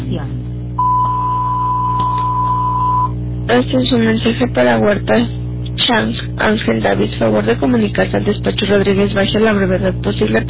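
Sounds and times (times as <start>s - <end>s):
low electrical hum: 0.0s - 10.4s
voicemail beep: 0.8s - 3.2s
speech: 3.5s - 10.4s.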